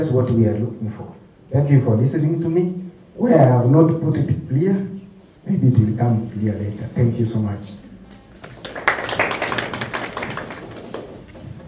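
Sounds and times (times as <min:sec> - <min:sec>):
speech: 0:00.0 - 0:07.8
many hands clapping: 0:08.4 - 0:11.6.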